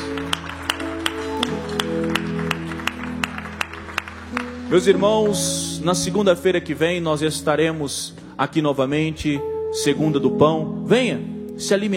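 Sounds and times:
audience clapping hands: 0:00.0 - 0:05.8
speech: 0:04.7 - 0:11.9.

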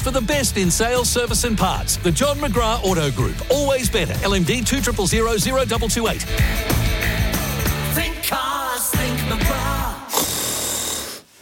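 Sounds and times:
speech: 0:00.0 - 0:07.2, 0:08.0 - 0:08.5
person snoring: 0:09.0 - 0:11.3.

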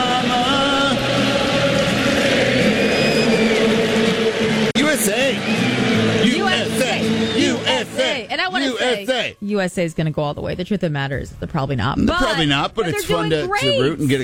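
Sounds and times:
stadium crowd singing along after a World Cup match: 0:00.0 - 0:09.4
speech: 0:08.9 - 0:14.2.

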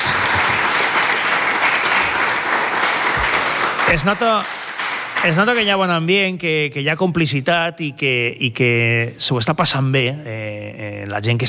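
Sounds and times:
audience applause: 0:00.0 - 0:05.7
speech: 0:03.9 - 0:04.6, 0:05.2 - 0:11.4.

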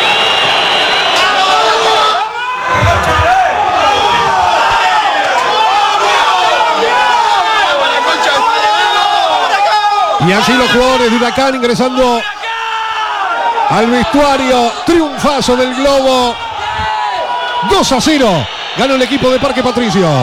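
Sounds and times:
football stadium crowd cheering and chanting: 0:00.0 - 0:20.2
low thump: 0:02.6 - 0:05.0
speech: 0:10.2 - 0:12.4, 0:13.7 - 0:16.4, 0:17.6 - 0:20.2.

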